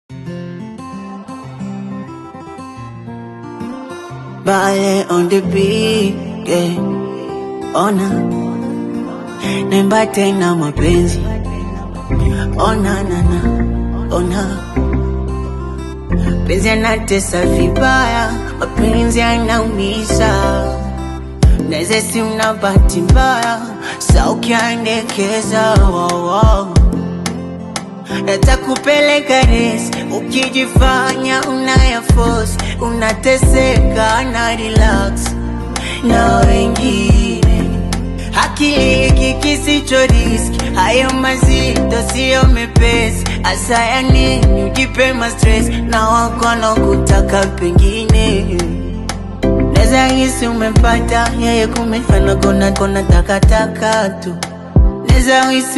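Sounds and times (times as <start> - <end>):
afrobeats duet from Tanzania and Kenya: 0.5 - 55.7.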